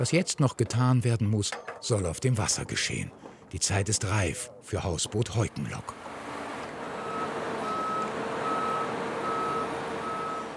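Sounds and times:
speech: 0:00.0 - 0:06.2
five-axle heavy truck maneuvering: 0:04.6 - 0:10.5.

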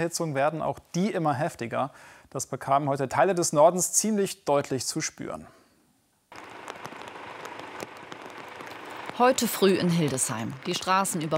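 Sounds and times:
speech: 0:00.0 - 0:05.6, 0:09.2 - 0:11.3
heavy rain falling in a storm after a heatwave: 0:06.3 - 0:11.3.

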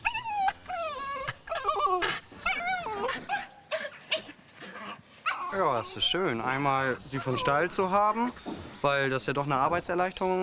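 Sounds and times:
excited farm dog whimpering and yipping: 0:00.0 - 0:06.1, 0:07.1 - 0:08.3
speech: 0:05.6 - 0:10.4.

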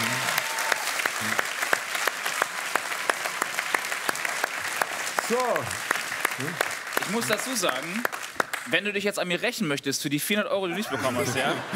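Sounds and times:
audience applause: 0:00.0 - 0:08.8
speech: 0:01.2 - 0:01.5, 0:05.3 - 0:11.7
laughter: 0:10.7 - 0:11.7.

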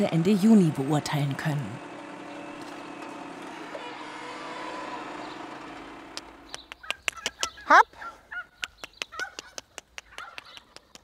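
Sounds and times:
speech: 0:00.0 - 0:01.9
turkeys calling: 0:06.4 - 0:10.9.

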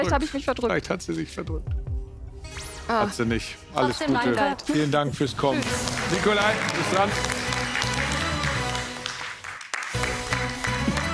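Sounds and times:
speech: 0:00.0 - 0:01.8, 0:02.9 - 0:07.4
people clapping: 0:05.4 - 0:11.1.

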